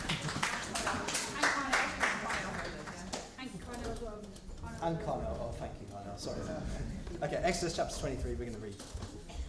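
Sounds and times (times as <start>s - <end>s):
audience applause: 0.0s - 3.2s
speech: 4.8s - 9.3s.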